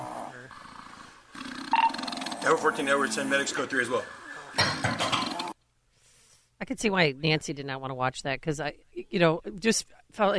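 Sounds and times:
snoring: 0:00.0 - 0:04.5
speech: 0:02.4 - 0:04.9, 0:06.7 - 0:10.3.

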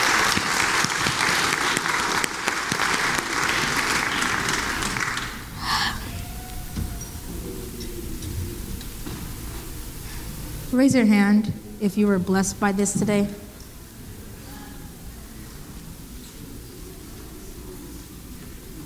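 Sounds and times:
audience applause: 0:00.0 - 0:06.7
speech: 0:10.8 - 0:13.4.

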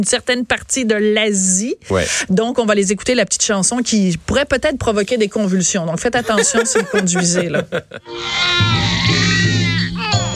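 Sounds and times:
speech: 0:00.0 - 0:09.2
laughter: 0:06.2 - 0:08.1
baby crying: 0:08.1 - 0:10.3.

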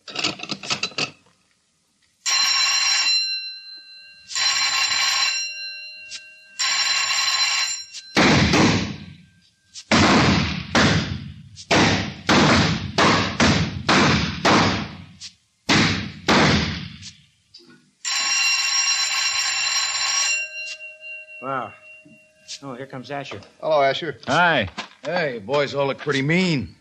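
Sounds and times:
bright buzzing bell rings: 0:02.3 - 0:09.8, 0:18.0 - 0:23.3
rapid string of loud sharp bangs: 0:08.2 - 0:09.1, 0:09.9 - 0:15.1, 0:15.7 - 0:17.0
speech: 0:22.9 - 0:26.7.

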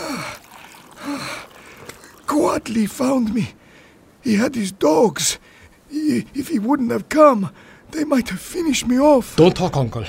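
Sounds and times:
water poured into a basin: 0:00.0 - 0:02.9
soft hiss: 0:00.0 - 0:08.2
speech: 0:02.4 - 0:03.6, 0:04.2 - 0:10.0.

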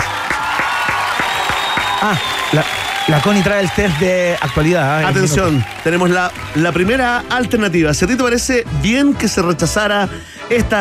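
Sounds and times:
applause: 0:00.0 - 0:07.2
speech: 0:02.0 - 0:10.8.

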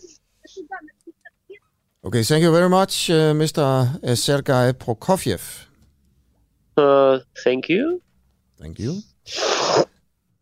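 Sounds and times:
speech: 0:02.1 - 0:05.7, 0:06.8 - 0:08.0, 0:08.6 - 0:09.9
person sniffing: 0:09.3 - 0:10.0.

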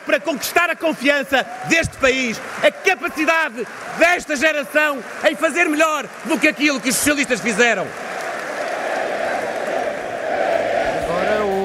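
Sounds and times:
congress audience standing and applauding: 0:00.0 - 0:11.6
speech: 0:00.1 - 0:08.0.

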